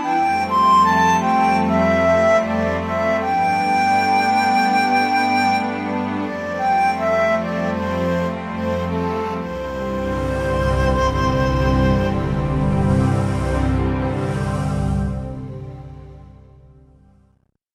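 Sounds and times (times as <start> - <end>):
flute: 0.0 - 16.5
strings: 0.0 - 17.1.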